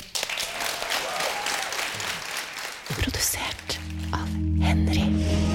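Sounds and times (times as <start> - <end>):
audience applauding: 0.0 - 4.2
speech: 3.2 - 5.4.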